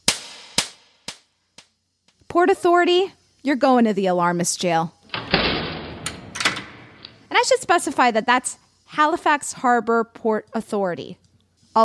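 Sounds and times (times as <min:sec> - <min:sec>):
slap sound effect: 0:00.0 - 0:01.3
speech: 0:02.3 - 0:05.0, 0:07.4 - 0:11.2.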